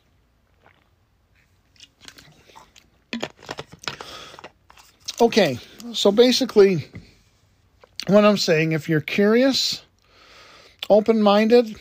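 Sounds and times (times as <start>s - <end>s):
person sipping water and swallowing: 0.5s - 2.9s
speech: 5.2s - 7.0s, 8.1s - 9.8s, 10.9s - 11.7s.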